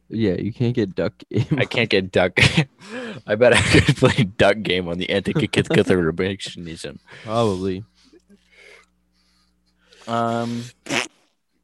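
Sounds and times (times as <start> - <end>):
speech: 0.1 - 7.9, 10.1 - 11.1
sneeze: 10.8 - 11.3.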